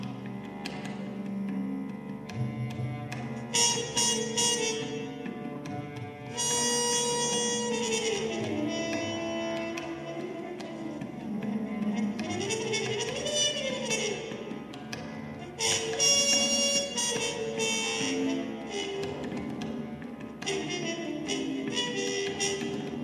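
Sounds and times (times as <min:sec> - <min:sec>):
instrument tuning: 0:00.0 - 0:23.0.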